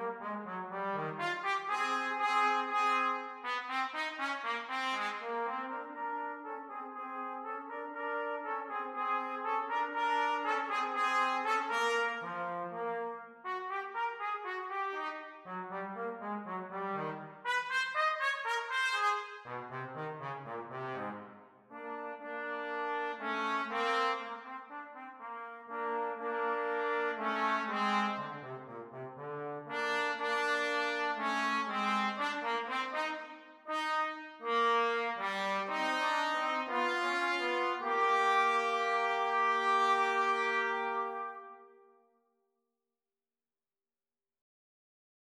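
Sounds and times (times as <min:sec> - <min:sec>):
trombone: 0:00.0 - 0:41.8
trumpet: 0:00.0 - 0:42.0.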